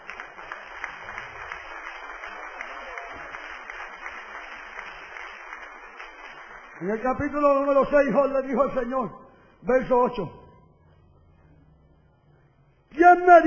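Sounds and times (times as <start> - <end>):
audience applause: 0.0 - 8.1
speech: 6.8 - 10.4.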